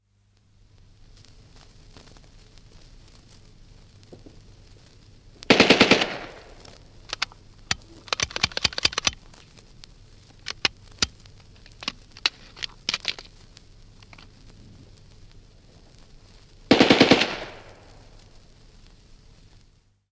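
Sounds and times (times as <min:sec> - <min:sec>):
Bren gun short bursts: 0:05.5 - 0:07.3, 0:08.0 - 0:09.2, 0:16.7 - 0:17.9
Bren gun jamming: 0:05.5 - 0:09.2, 0:10.4 - 0:13.3, 0:16.7 - 0:18.0.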